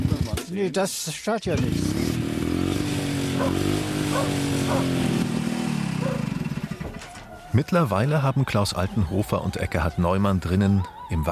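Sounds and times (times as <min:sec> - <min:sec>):
speech: 0:00.6 - 0:02.2, 0:03.4 - 0:05.2, 0:07.5 - 0:11.2
old motorcycle engine idling: 0:01.6 - 0:07.5.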